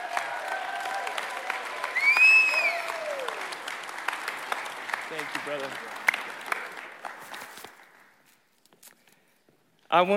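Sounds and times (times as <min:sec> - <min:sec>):
church audience voices cheering: 0:00.0 - 0:03.8
church audience applauding to welcome a preacher: 0:00.0 - 0:08.2
speech: 0:05.5 - 0:06.0, 0:09.9 - 0:10.1.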